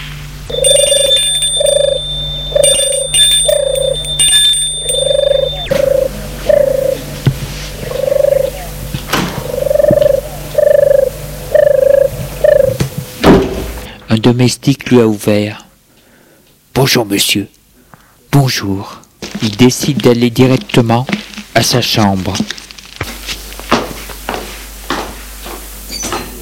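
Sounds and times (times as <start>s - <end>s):
bright buzzy ringing: 0.0s - 13.9s
front door bell ringing: 0.5s - 7.0s
speech: 14.4s - 15.6s, 16.9s - 17.6s, 18.4s - 22.6s.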